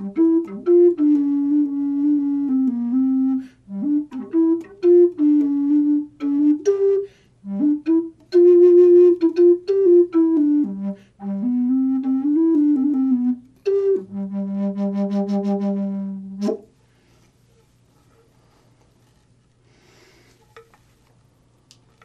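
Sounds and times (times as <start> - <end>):
natural wood flute: 0.0 - 16.8.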